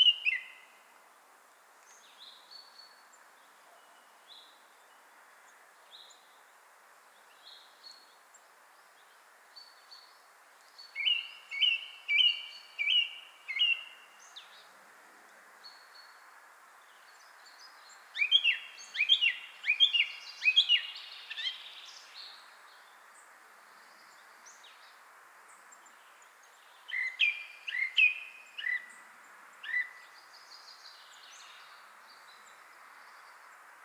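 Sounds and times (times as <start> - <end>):
Song thrush Turdus philomelos singing whistled double notes: 0.0 - 0.7, 10.8 - 14.6, 17.0 - 22.9, 26.0 - 29.0, 29.6 - 33.4.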